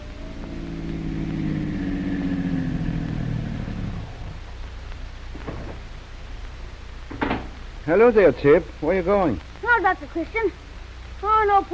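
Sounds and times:
car pulling up to the curb: 0:00.0 - 0:05.9
speech: 0:07.9 - 0:10.6, 0:11.2 - 0:11.7.

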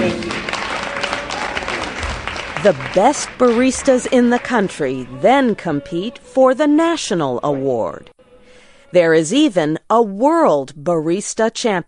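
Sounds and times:
audience applause: 0:00.0 - 0:05.6
speech: 0:02.6 - 0:08.1, 0:08.9 - 0:11.8.

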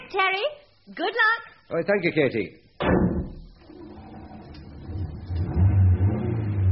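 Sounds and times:
speech: 0:00.1 - 0:02.9
car engine rumbling and revving: 0:03.7 - 0:06.7.

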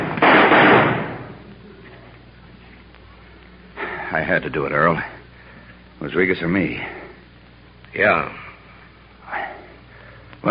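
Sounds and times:
gunshots fired during a fight: 0:00.0 - 0:01.4
speech: 0:04.2 - 0:05.2, 0:06.0 - 0:07.0, 0:07.9 - 0:08.4.

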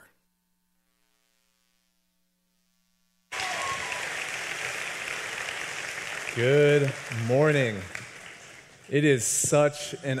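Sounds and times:
church congregation applauding a pastor: 0:03.3 - 0:10.1
speech: 0:06.4 - 0:08.0, 0:08.9 - 0:10.1.

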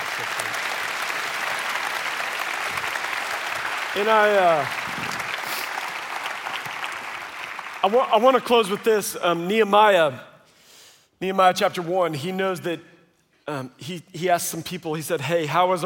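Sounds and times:
audience round of applause: 0:00.0 - 0:08.9
speech: 0:03.9 - 0:05.2, 0:07.8 - 0:10.3, 0:11.2 - 0:12.9, 0:13.5 - 0:15.8.

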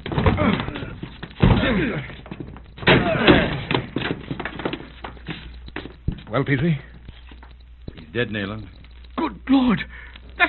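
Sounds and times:
people grunting with effort: 0:00.0 - 0:02.2, 0:02.8 - 0:04.1
door being forced and broken down: 0:00.0 - 0:05.2
speech: 0:01.7 - 0:02.2, 0:06.3 - 0:06.9, 0:08.1 - 0:08.8, 0:09.5 - 0:10.1.

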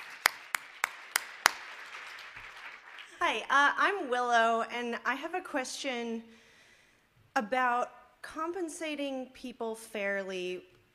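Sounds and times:
clap: 0:00.0 - 0:03.5
speech: 0:03.2 - 0:06.4, 0:07.4 - 0:10.7.

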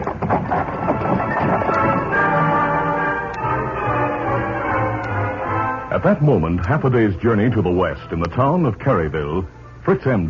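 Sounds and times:
hoofbeats of the Lone Ranger's horse Silver on a trail: 0:00.0 - 0:03.7
wagon travelling on a trail: 0:00.0 - 0:05.4
speech: 0:06.0 - 0:10.2.

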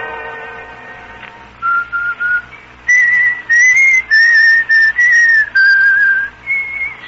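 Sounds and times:
man whistling a tune: 0:01.6 - 0:07.0.

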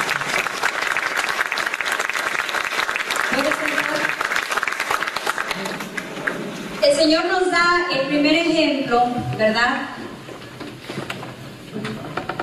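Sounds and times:
audience applause: 0:00.0 - 0:06.8
speech: 0:07.0 - 0:09.9.

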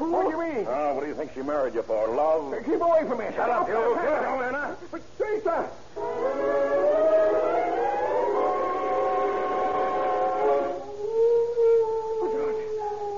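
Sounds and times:
speech: 0:00.6 - 0:06.7
dog howling: 0:06.1 - 0:13.1.

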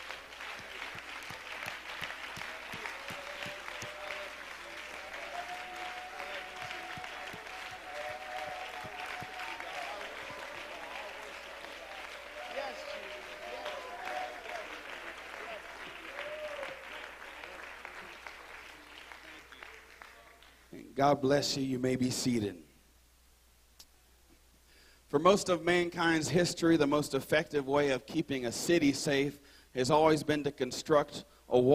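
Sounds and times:
audience applauding: 0:00.0 - 0:20.6
speech: 0:21.0 - 0:22.6, 0:25.1 - 0:31.7.

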